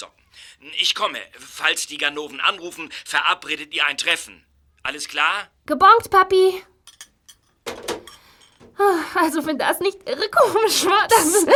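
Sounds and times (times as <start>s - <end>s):
speech: 0.0s - 6.7s, 8.8s - 11.5s
someone fumbling with a door lock: 7.6s - 8.8s.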